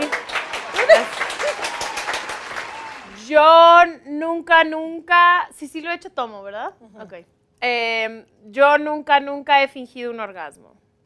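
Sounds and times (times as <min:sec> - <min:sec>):
audience applause: 0:00.0 - 0:03.3
laughter: 0:00.8 - 0:01.7
speech: 0:03.3 - 0:10.8.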